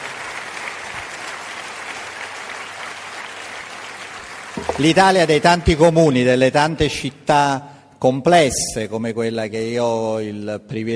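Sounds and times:
audience applause: 0.0 - 6.3
speech: 4.6 - 10.9.

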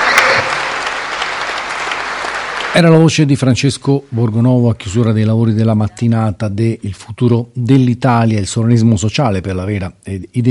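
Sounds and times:
audience applause closing a conference morning session in Orvieto: 0.0 - 3.1
speech: 2.8 - 10.4.

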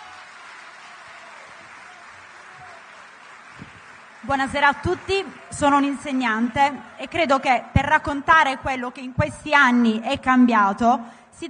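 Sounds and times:
audience applause: 0.0 - 7.4
speech: 4.2 - 11.4.

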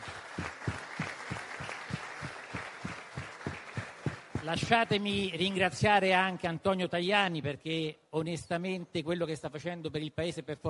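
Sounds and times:
audience applause: 0.0 - 5.1
speech: 4.4 - 10.6.

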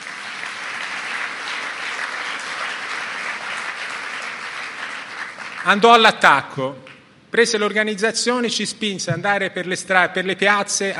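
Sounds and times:
audience applause in a hall at an Italian cooperative gathering: 0.0 - 6.0
speech: 5.6 - 10.9.

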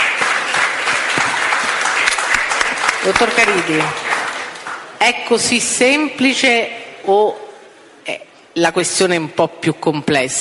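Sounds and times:
audience clapping at an Italian-language discussion event: 0.0 - 5.0
speech: 3.0 - 4.1, 5.0 - 7.4, 8.0 - 10.4.

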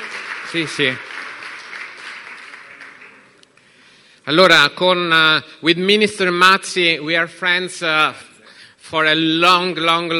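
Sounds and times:
audience applause welcoming a guest onto a stage: 0.0 - 3.8
speech: 0.5 - 1.1, 4.3 - 8.3, 8.9 - 10.1.

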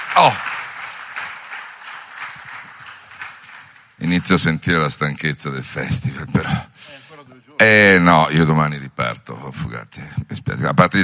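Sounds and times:
audience applause: 0.0 - 4.7
speech: 0.2 - 0.5, 4.0 - 7.0, 7.6 - 11.0.

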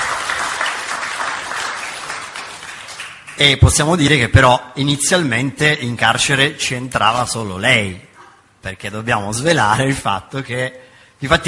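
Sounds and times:
audience applause: 0.0 - 3.4
speech: 3.4 - 11.4.

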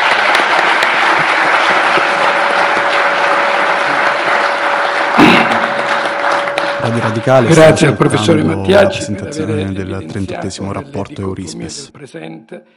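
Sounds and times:
audience applause: 0.0 - 8.4
speech: 6.8 - 12.7.

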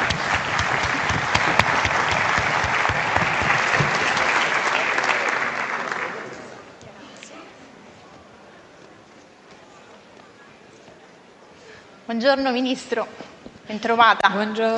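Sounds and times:
large audience applause: 0.0 - 6.8
speech: 12.2 - 14.7.

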